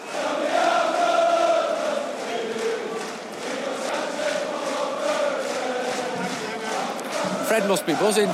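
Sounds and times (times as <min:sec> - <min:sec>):
stadium crowd of fans singing loudly in unison: 0:00.0 - 0:08.3
speech: 0:07.5 - 0:08.3.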